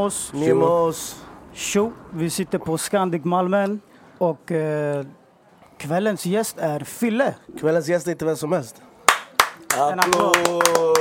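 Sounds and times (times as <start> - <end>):
speech: 0.0 - 5.2, 5.8 - 8.9, 9.8 - 11.0
applause: 9.1 - 11.0.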